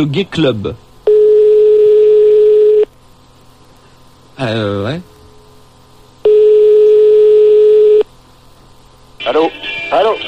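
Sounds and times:
speech: 0.0 - 0.8, 4.4 - 5.1
telephone line tone while calling a nightclub: 1.1 - 2.9, 6.2 - 8.1.

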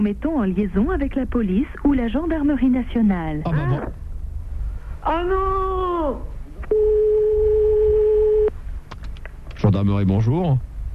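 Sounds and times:
speech: 0.0 - 4.0, 5.0 - 6.3, 9.6 - 10.7
faint hum: 0.0 - 10.9
telephone line ringing on a call to the police: 6.7 - 8.5.

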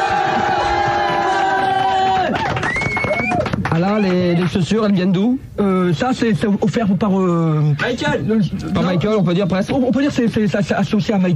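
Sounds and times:
crowd cheering in a standing ovation: 0.0 - 4.5
speech: 3.8 - 11.3.

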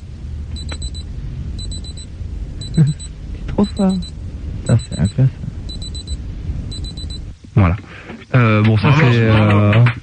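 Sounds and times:
low rumble of noise: 0.0 - 7.4
mouth imitation of an alarm clock ringing: 2.6 - 7.2
speech: 2.8 - 3.0, 3.6 - 4.1, 4.7 - 5.4, 7.6 - 10.0.

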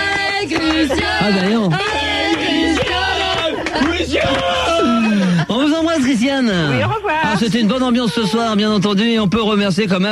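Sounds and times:
audience applauding: 0.0 - 5.4
laughter: 0.1 - 8.9
speech: 0.5 - 1.9, 6.0 - 10.1.

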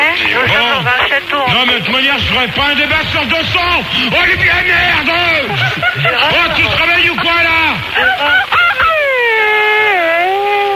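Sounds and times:
laughter: 0.0 - 10.7
speech: 1.6 - 8.5
ghostly wailing moan sound effect in a castle: 3.0 - 10.7.

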